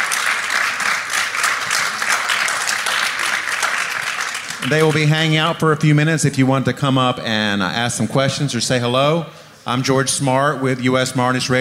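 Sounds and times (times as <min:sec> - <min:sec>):
audience applause: 0:00.0 - 0:05.1
speech: 0:04.6 - 0:11.5.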